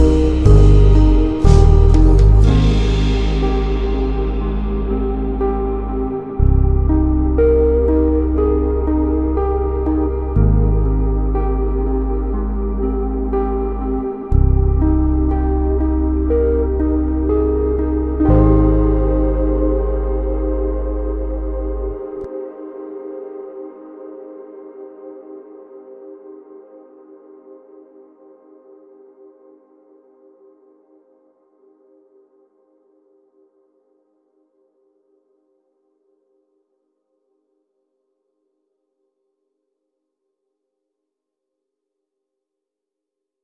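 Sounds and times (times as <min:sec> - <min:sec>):
slowed instrumental music with reverb: 0:00.0 - 0:29.5.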